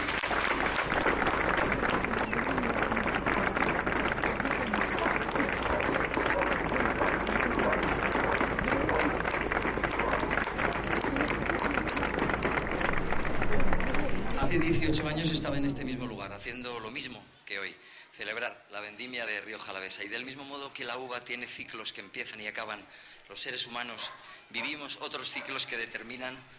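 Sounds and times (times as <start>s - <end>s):
audience applause: 0.0s - 16.3s
speech: 14.6s - 17.2s, 19.0s - 26.5s.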